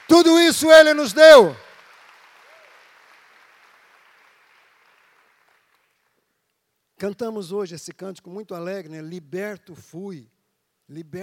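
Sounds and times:
audience applause: 0.0s - 6.0s
speech: 0.1s - 1.6s, 7.0s - 11.2s.

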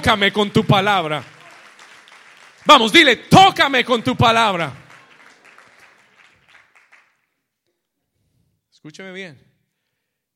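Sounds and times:
speech: 0.0s - 1.4s, 2.6s - 4.8s, 8.8s - 9.5s
audience applause: 0.0s - 3.1s, 3.7s - 7.2s.

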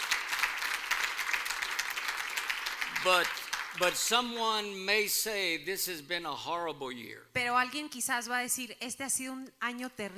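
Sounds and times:
congregation applauding at a church service: 0.0s - 4.8s
speech: 3.0s - 10.1s.

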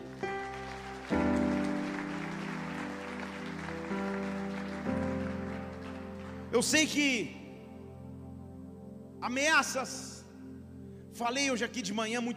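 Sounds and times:
audience applause: 0.0s - 6.6s
sustained keyboard chords: 0.0s - 12.3s
speech: 6.6s - 7.4s, 9.2s - 10.1s, 11.2s - 12.3s.

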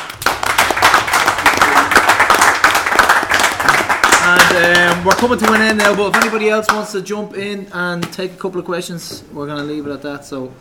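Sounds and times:
round of applause: 0.0s - 6.4s
speech: 4.6s - 10.6s.

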